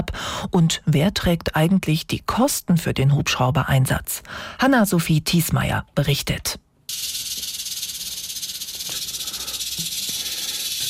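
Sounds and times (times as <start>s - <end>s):
speech: 0.4s - 7.0s
snake hissing: 6.9s - 10.8s.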